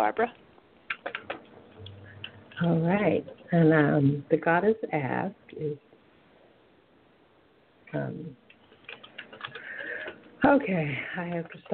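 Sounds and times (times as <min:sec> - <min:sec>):
speech: 0:00.0 - 0:01.3, 0:02.6 - 0:05.9, 0:07.9 - 0:08.4, 0:10.4 - 0:11.7
keyboard typing: 0:00.9 - 0:02.8, 0:08.5 - 0:10.2.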